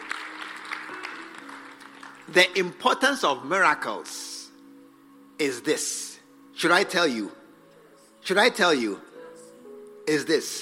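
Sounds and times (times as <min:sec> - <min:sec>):
audience clapping: 0:00.0 - 0:02.8
speech: 0:02.3 - 0:04.3, 0:05.4 - 0:07.4, 0:08.2 - 0:09.1, 0:10.1 - 0:10.5.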